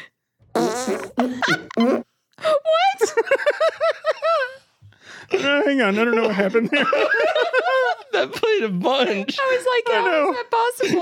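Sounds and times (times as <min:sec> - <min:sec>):
fart: 0:00.5 - 0:02.0
speech: 0:01.2 - 0:03.5, 0:05.4 - 0:11.0
laughter: 0:03.0 - 0:04.6, 0:05.3 - 0:11.0.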